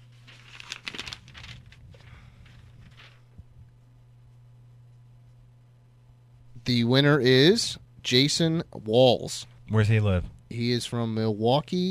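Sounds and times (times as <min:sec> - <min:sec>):
paper crinkling as a winner's name is drawn from a hat: 0:00.0 - 0:03.5
speech: 0:06.6 - 0:11.9.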